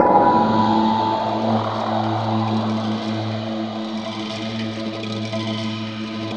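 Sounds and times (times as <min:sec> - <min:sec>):
gong with gated effect: 0:00.0 - 0:05.2.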